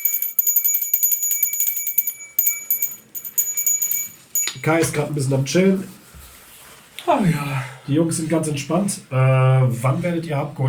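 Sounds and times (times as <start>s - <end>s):
hand bell ringing: 0.0s - 4.9s
speech: 4.6s - 6.0s, 7.1s - 10.6s.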